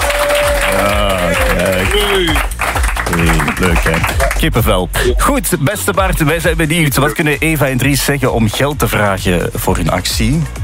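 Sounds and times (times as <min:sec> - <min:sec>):
live applause from a school in Maaseik: 0:00.0 - 0:05.2
speech: 0:03.6 - 0:10.6.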